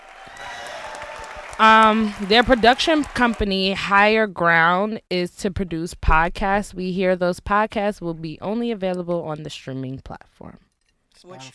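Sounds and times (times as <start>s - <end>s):
light applause from a small group: 0.0s - 3.7s
speech: 1.6s - 11.5s.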